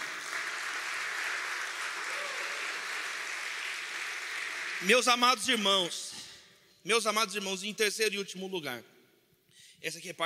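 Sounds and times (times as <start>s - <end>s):
audience applause: 0.0s - 5.1s
speech: 4.8s - 8.9s, 9.8s - 10.2s.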